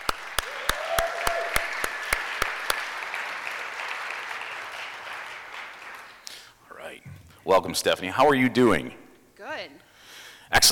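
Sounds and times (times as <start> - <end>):
round of applause: 0.0 - 6.4
speech: 7.4 - 9.0.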